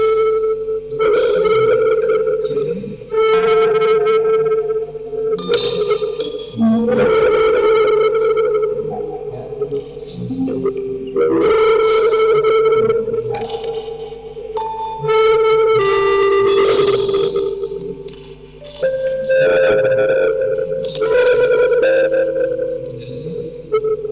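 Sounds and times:
music box quartet with tape through vocoder: 0.0 - 24.1.

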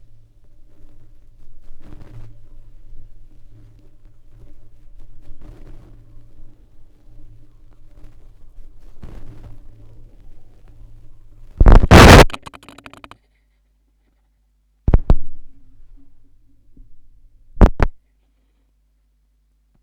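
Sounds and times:
vinyl record noise: 11.6 - 13.2, 17.6 - 17.9.

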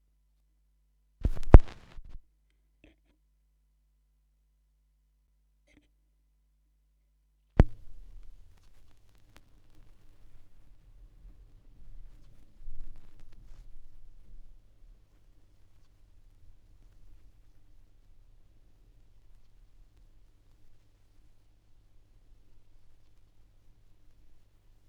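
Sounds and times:
vinyl record noise: 1.2 - 2.2, 7.6 - 24.8.

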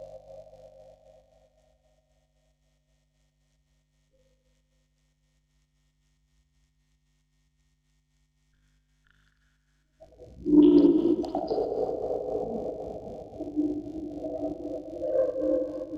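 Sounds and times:
vocoder recorded on tape: 10.0 - 15.9.

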